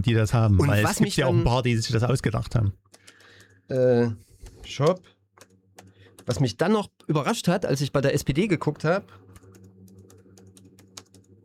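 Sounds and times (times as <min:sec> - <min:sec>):
speech: 0:00.0 - 0:03.0, 0:03.7 - 0:05.1, 0:06.3 - 0:09.2
typing on a computer keyboard: 0:01.8 - 0:06.6, 0:09.2 - 0:11.4.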